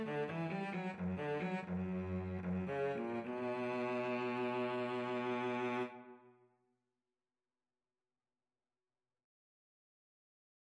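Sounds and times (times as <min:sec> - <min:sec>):
violin and cello duet: 0:00.0 - 0:06.2.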